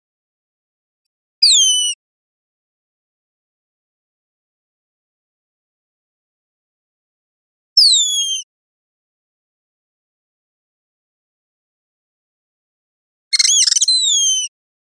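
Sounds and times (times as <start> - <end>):
bird downslurred whistle: 1.4 - 2.0, 7.8 - 8.5, 13.3 - 14.5.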